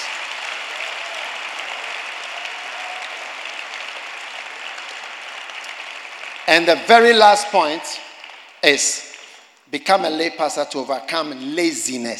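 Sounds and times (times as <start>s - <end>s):
crowd applause: 0.0s - 9.4s
speech: 6.5s - 9.1s, 9.7s - 12.1s.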